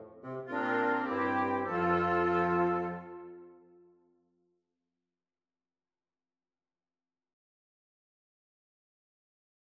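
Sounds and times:
small wind quintet playing: 0.0 - 3.6.

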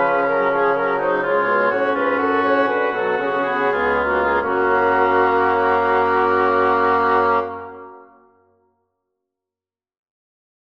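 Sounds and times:
woodwind quartet playing a minor-key fugue: 0.0 - 8.2.

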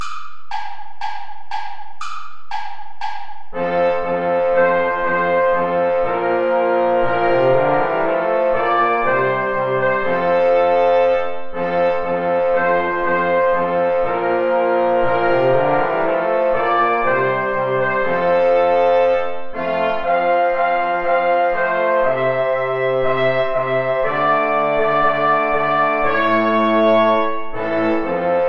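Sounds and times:
play-along backing track without trumpet: 3.5 - 28.4.

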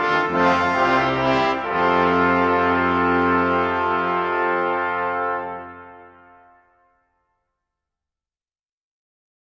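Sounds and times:
organ intrada: 0.0 - 6.6.

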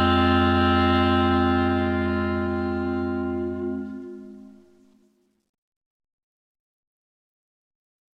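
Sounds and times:
clarinets playing an interlude: 0.0 - 5.1.

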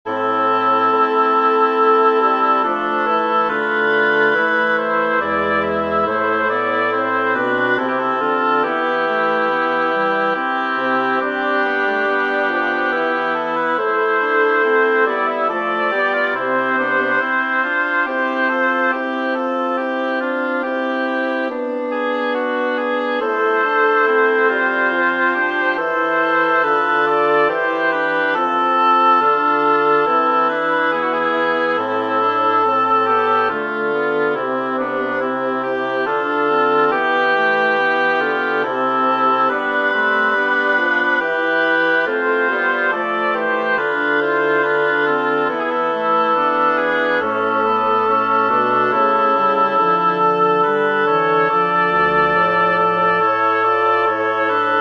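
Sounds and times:
double reed quartet playing a choral prelude: 0.0 - 54.7.

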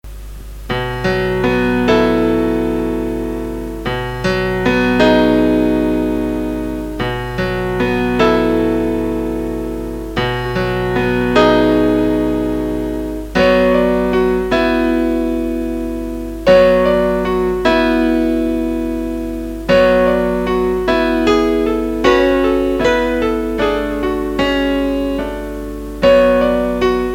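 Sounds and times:
short piano piece: 0.1 - 27.1.

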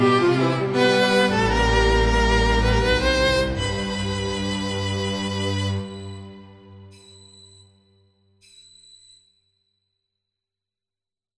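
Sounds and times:
incidental music: 0.0 - 7.8.

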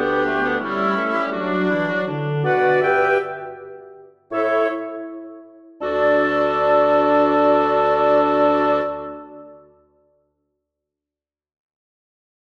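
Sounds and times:
woodwind quintet playing: 0.0 - 9.7.

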